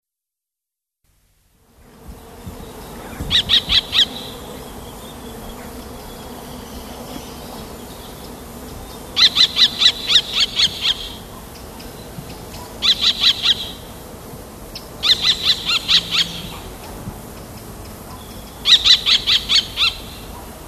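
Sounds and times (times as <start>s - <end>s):
common kestrel calling in sharp shrill kee-kee notes: 3.0s - 4.4s, 9.2s - 13.8s, 14.8s - 16.6s, 18.1s - 20.4s.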